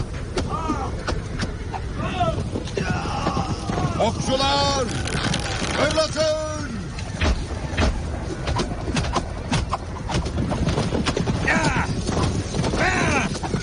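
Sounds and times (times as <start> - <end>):
horses' hooves clip-clopping as horses balk at a trench: 0.0 - 13.6
speech: 4.0 - 5.1, 5.8 - 6.5.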